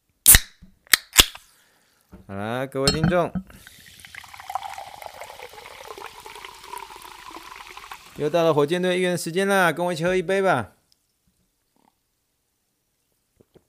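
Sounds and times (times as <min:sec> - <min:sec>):
speech: 0:02.3 - 0:03.8, 0:08.2 - 0:10.8
sparkling water fizzing: 0:03.5 - 0:08.4.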